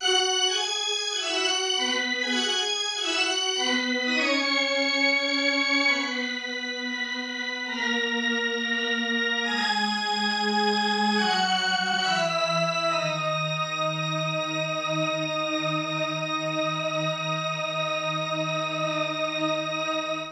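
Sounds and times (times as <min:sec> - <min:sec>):
organ: 0:00.0 - 0:20.2.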